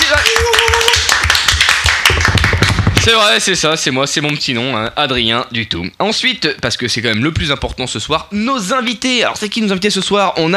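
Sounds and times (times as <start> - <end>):
audience applause: 0.0 - 3.3
speech: 3.1 - 10.5.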